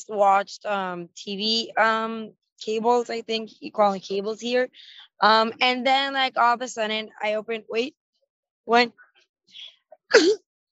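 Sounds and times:
speech: 0.0s - 8.0s, 8.7s - 10.5s
sneeze: 10.1s - 10.4s.

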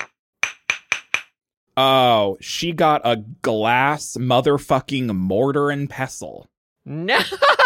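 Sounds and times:
judge's gavel striking: 0.0s - 1.4s
speech: 1.8s - 7.6s
laughter: 7.0s - 7.6s.

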